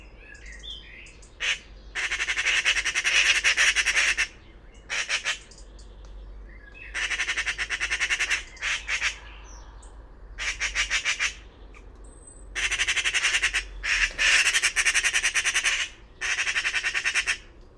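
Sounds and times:
bird squawking: 0:01.4 - 0:05.6, 0:06.9 - 0:09.2, 0:10.4 - 0:11.4, 0:12.6 - 0:17.5.

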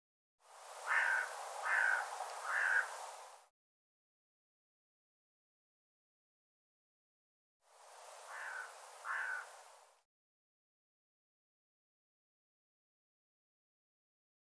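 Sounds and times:
bird harsh calls: 0:00.9 - 0:02.9, 0:08.3 - 0:09.5.

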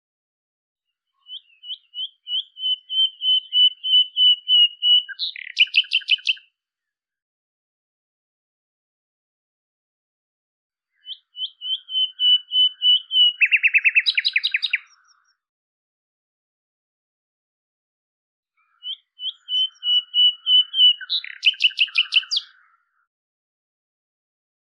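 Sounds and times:
bird whistling into a trill: 0:01.3 - 0:06.4, 0:11.0 - 0:14.8, 0:18.8 - 0:22.5.

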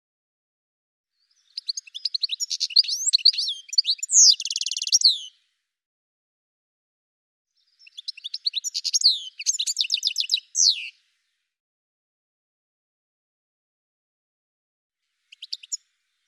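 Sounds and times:
bird chirping: 0:01.2 - 0:05.4, 0:07.6 - 0:11.5, 0:15.1 - 0:16.2.

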